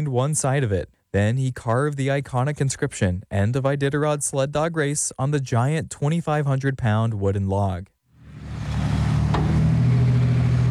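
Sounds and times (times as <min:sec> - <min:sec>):
speech: 0:00.0 - 0:07.9
heavy haulers dumping snow on Front Street in Nome: 0:08.2 - 0:10.6.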